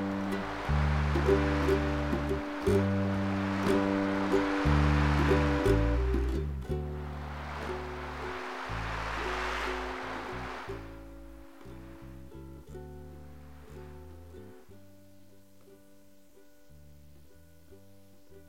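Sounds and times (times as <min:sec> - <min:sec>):
waves: 0:00.0 - 0:12.2
ukulele: 0:00.0 - 0:18.4.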